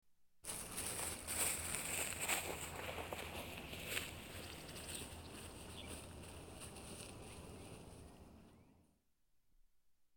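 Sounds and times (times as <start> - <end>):
footsteps walking through grass: 0.4 - 8.1.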